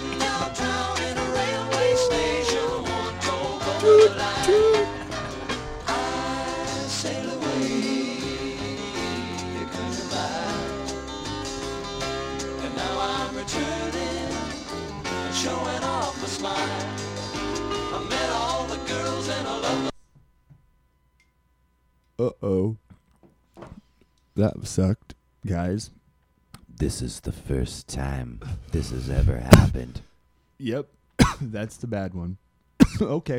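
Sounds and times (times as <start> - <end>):
1970 folk rock song with full band and sung melody: 0.0 - 19.9
speech: 24.7 - 26.0, 26.8 - 33.3.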